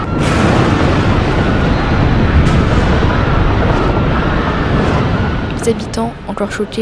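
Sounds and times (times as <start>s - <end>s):
crackling bursts: 0.0s - 6.8s
volcanic eruption rumble: 0.0s - 6.8s
speech: 5.7s - 6.8s.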